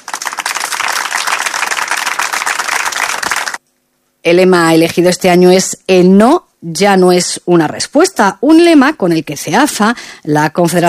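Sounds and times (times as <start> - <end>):
audience applause: 0.0 - 3.6
speech: 4.2 - 10.8.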